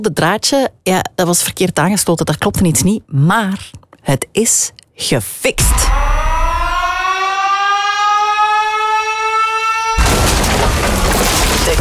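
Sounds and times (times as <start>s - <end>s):
speech: 0.0s - 6.4s
bomb explosion: 5.6s - 7.3s, 10.0s - 11.7s
loud steady wailing siren: 5.6s - 11.7s.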